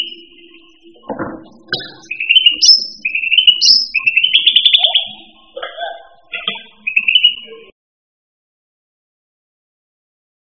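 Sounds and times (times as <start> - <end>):
cucak rante song: 0.0 - 7.7.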